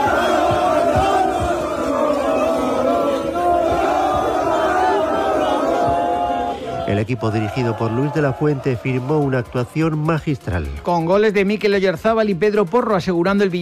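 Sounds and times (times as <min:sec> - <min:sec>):
large crowd of football fans chanting and cheering: 0:00.0 - 0:09.6
thumping beats: 0:00.0 - 0:12.7
speech: 0:07.0 - 0:13.6.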